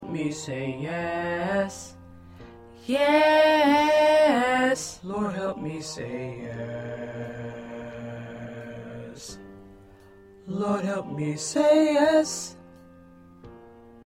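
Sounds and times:
first tenor voice singing: 0:00.0 - 0:02.0, 0:02.8 - 0:09.5, 0:10.4 - 0:12.6.

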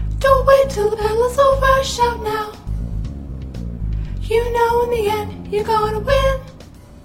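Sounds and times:
soprano singing: 0:00.2 - 0:02.7, 0:04.2 - 0:06.7.

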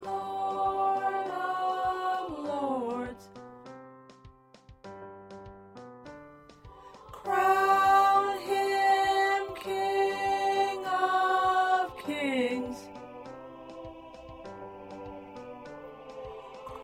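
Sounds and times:
first tenor voice singing: 0:00.0 - 0:03.3, 0:06.8 - 0:16.8.

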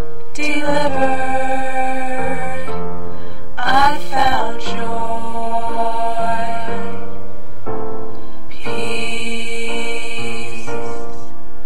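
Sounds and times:
tenor singing: 0:00.3 - 0:03.0, 0:03.6 - 0:07.3, 0:08.5 - 0:11.3.

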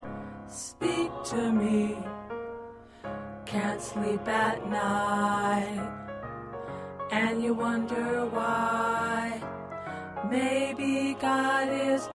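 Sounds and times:
tenor choir part singing: 0:00.6 - 0:02.2, 0:03.5 - 0:06.0, 0:07.1 - 0:09.6, 0:10.2 - 0:12.1.

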